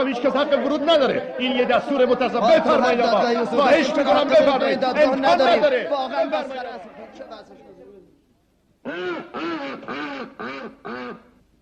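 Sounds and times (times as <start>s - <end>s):
speech: 0.0s - 7.7s, 8.8s - 11.3s
duck quacking: 8.8s - 11.3s.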